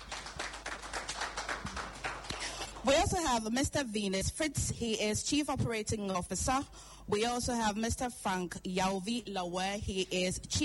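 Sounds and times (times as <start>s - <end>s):
sparse audience clapping at a corporate event: 0.0s - 2.9s
speech: 2.8s - 10.6s.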